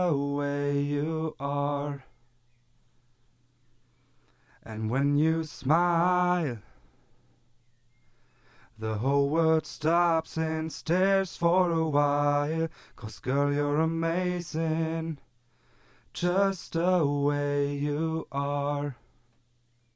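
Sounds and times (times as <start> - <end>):
short acoustic a cappella singing: 0.0 - 2.2, 4.6 - 6.8, 8.8 - 15.3, 16.1 - 19.1.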